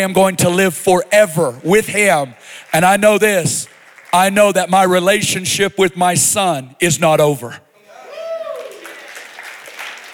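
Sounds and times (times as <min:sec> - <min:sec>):
audience clapping: 0:00.0 - 0:05.4, 0:08.5 - 0:10.1
speech: 0:00.0 - 0:07.6.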